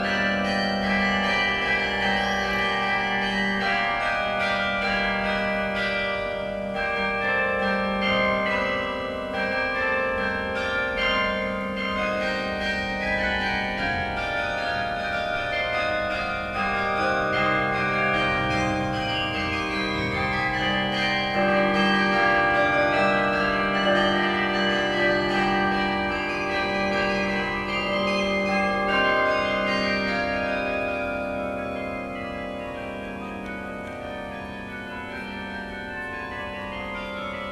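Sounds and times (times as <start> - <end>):
carillon concert: 0.0 - 37.4.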